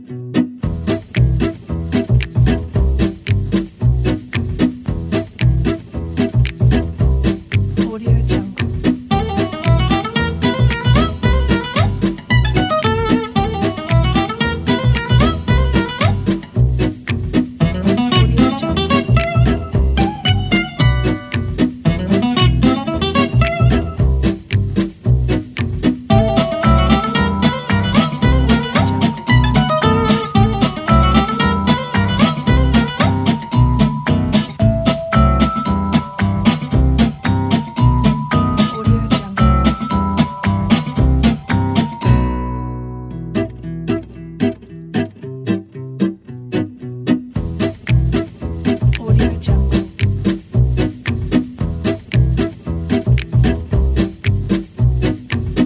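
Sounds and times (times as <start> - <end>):
jazz music: 0.4 - 44.6, 47.2 - 55.6.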